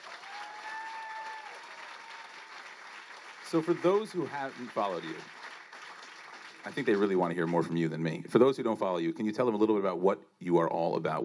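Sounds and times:
audience applause: 0.0s - 8.0s
speech: 3.5s - 5.4s, 6.6s - 11.2s.

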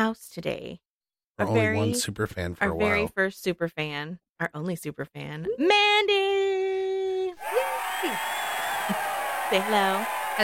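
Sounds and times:
speech: 0.0s - 0.8s, 1.4s - 6.4s, 7.5s - 10.4s
crowd cheering: 7.4s - 10.4s.

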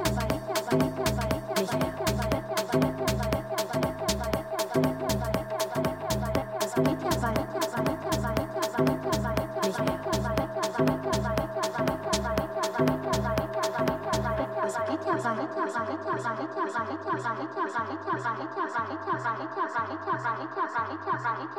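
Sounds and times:
Day of the Dead music in Tucson, Arizona: 0.0s - 21.4s.

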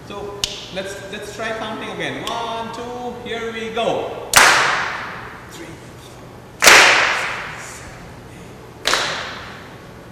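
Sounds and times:
speech: 0.1s - 4.3s
loud sharp hand claps: 4.3s - 5.2s, 6.6s - 7.7s, 8.8s - 9.6s.

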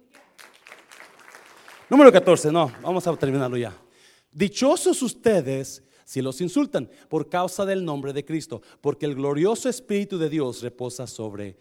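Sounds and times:
audience applauding: 0.0s - 3.8s
speech: 1.9s - 11.5s.

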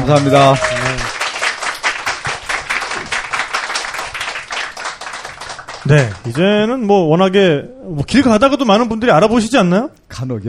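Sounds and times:
speech: 0.0s - 0.7s, 5.9s - 10.4s
congratulatory clapping from a small group: 0.0s - 6.6s.

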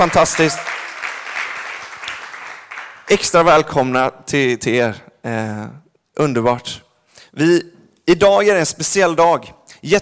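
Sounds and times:
speech: 0.0s - 0.7s, 3.1s - 6.8s, 7.4s - 10.0s
audience applause: 0.0s - 3.1s.

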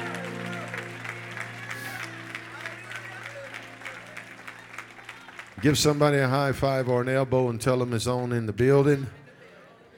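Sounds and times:
audience clapping hands: 0.0s - 7.3s
speech: 5.6s - 9.2s.

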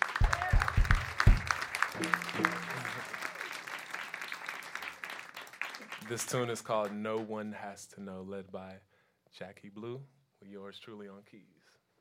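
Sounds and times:
audience applause: 0.0s - 6.5s
speech: 6.1s - 11.6s.

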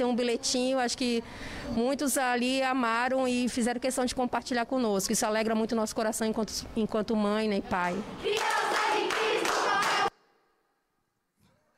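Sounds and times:
speech: 0.0s - 8.6s
people clapping for a child: 7.9s - 10.2s.

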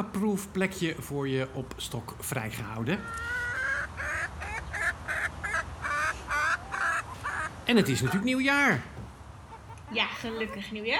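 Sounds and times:
speech: 0.0s - 3.4s, 7.7s - 9.0s, 9.9s - 10.9s
chickens clucking in a coop: 2.0s - 10.9s.

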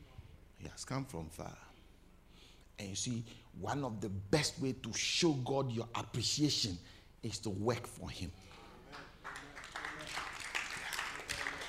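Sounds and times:
speech: 0.6s - 1.7s, 2.8s - 9.1s
audience clapping: 8.9s - 11.6s.

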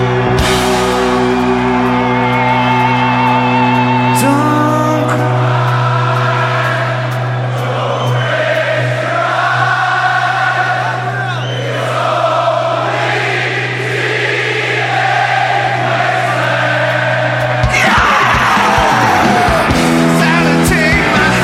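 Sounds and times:
loud concert crowd yelling and cheering: 0.0s - 21.4s
whoops from the crowd: 1.7s - 4.6s, 17.7s - 19.8s.

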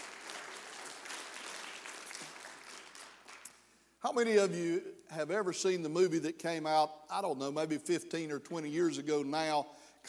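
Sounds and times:
audience applauding: 0.0s - 3.5s
speech: 4.0s - 10.0s.

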